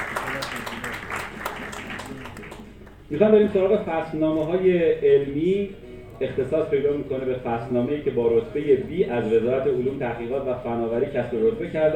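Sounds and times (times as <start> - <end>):
audience applause at a technology awards ceremony: 0.0 - 2.8
speech: 3.1 - 11.9.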